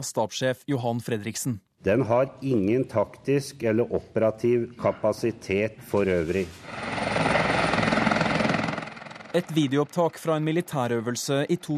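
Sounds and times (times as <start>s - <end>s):
speech: 0.0s - 6.9s, 9.3s - 11.7s
police helicopter flying by: 6.6s - 11.7s.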